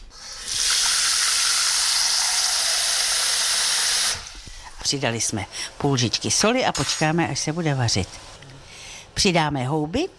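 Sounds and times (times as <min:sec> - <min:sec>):
water poured into a cooking pot: 0:00.2 - 0:04.7
speech: 0:04.9 - 0:08.4, 0:09.2 - 0:10.1.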